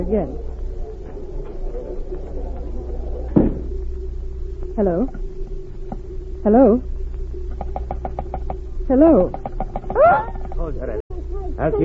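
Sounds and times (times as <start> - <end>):
speech: 0.0 - 0.5, 4.8 - 5.2, 6.4 - 6.9, 8.9 - 11.0, 11.6 - 11.8
low hum and rumble: 0.0 - 11.8
door clunking shut: 3.3 - 3.8.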